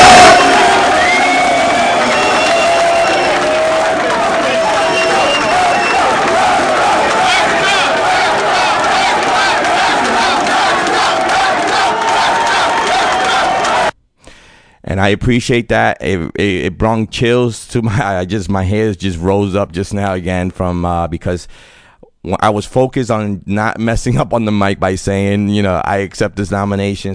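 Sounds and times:
crowd cheering at nomination announcement: 0.0 - 14.0
speech: 15.0 - 27.1.

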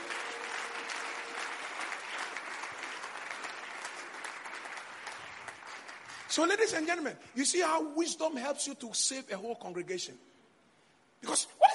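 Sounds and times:
audience clapping: 0.0 - 7.1
speech: 6.4 - 10.3.

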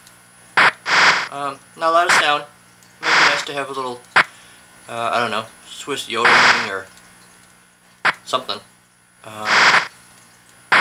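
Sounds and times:
faint steady low hum: 0.0 - 10.7
video game skis hissing on snow: 0.6 - 6.9, 9.2 - 10.1
speech: 1.3 - 2.6, 3.4 - 4.1, 4.9 - 7.0, 8.3 - 9.8.

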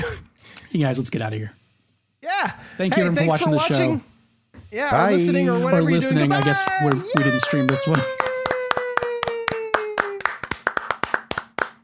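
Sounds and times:
speech: 0.7 - 1.6, 2.4 - 8.2
hand clapping: 6.0 - 11.8.

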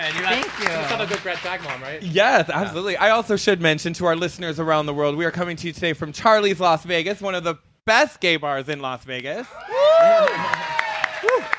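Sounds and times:
audience applause in a bar: 0.0 - 2.0, 9.5 - 11.5
speech: 0.0 - 10.7.

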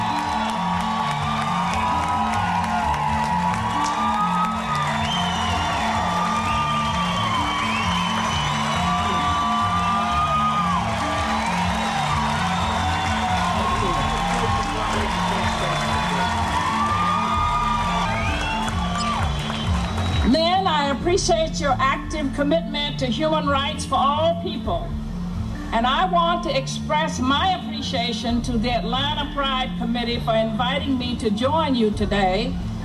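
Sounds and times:
crowd cheering at an Atlanta Pride event: 0.0 - 20.4
speech: 21.2 - 24.9, 25.8 - 32.7.

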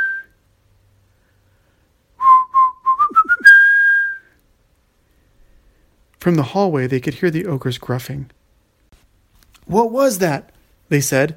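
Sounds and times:
flute playing a tune: 2.2 - 4.3
speech: 6.2 - 8.4, 9.7 - 11.3.

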